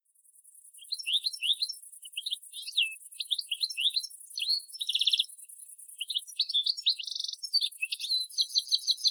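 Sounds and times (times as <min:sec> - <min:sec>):
European goldfinch Carduelis carduelis twittering with fast jangling chirps: 0:00.5 - 0:09.0.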